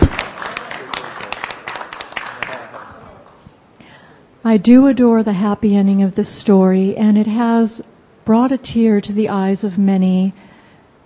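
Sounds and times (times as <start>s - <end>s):
applause: 0.0s - 3.4s
speech: 4.4s - 10.4s.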